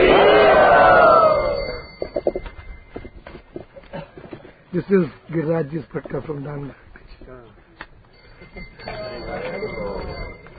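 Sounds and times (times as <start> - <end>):
crowd loudly shouting a welcome at a yatra: 0.0 - 1.7
speech: 4.8 - 7.6, 8.5 - 10.2.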